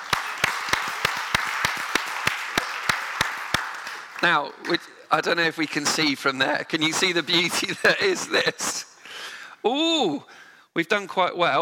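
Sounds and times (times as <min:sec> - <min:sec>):
audience clapping: 0:00.0 - 0:07.7
speech: 0:04.2 - 0:08.9, 0:09.6 - 0:11.6.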